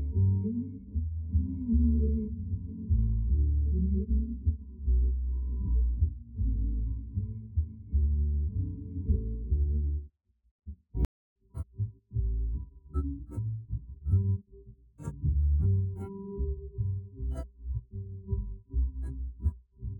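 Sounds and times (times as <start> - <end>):
bass: 0.0 - 19.9.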